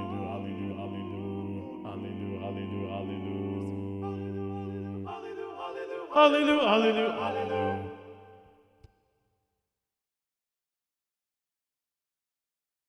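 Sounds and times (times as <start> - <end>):
mixed SATB choir singing with predominant first bass: 0.0 - 8.8.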